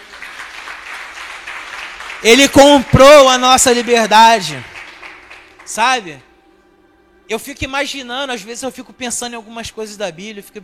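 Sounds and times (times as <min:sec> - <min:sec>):
audience applauding: 0:00.0 - 0:05.8
speech: 0:02.2 - 0:04.7, 0:05.7 - 0:06.3, 0:07.3 - 0:10.6.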